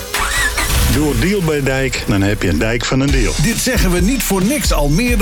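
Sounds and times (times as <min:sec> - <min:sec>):
go-kart engines revving at a karting venue in Assen: 0:00.2 - 0:02.9
speech: 0:01.2 - 0:05.2.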